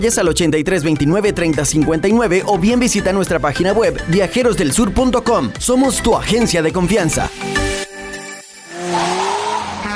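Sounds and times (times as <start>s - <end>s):
speech: 0.0s - 7.8s
car engine: 8.6s - 9.9s
car tires squealing running a stop sign: 8.7s - 9.9s.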